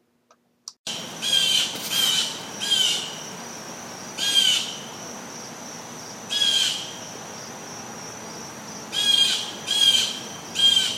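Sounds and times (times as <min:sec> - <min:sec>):
bird calls: 0:01.2 - 0:03.2, 0:06.3 - 0:07.0, 0:08.9 - 0:10.9.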